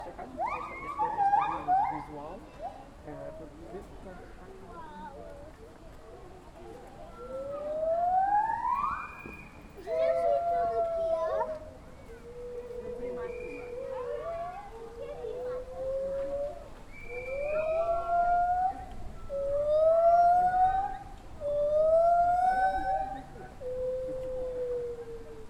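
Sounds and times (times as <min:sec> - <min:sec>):
zoo ambience: 0:00.0 - 0:25.4
distant white-handed gibbon calls: 0:07.1 - 0:25.4.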